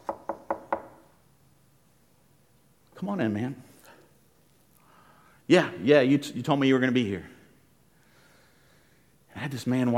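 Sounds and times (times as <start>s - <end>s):
knocks on a door late at night: 0.0s - 1.0s
speech: 3.0s - 3.7s, 5.5s - 7.3s, 9.4s - 9.9s.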